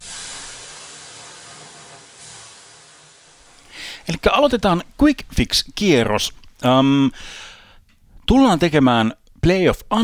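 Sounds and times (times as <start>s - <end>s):
water thrown on hot sauna stones hissing: 0.0s - 3.8s
speech: 4.0s - 7.5s, 8.3s - 10.0s.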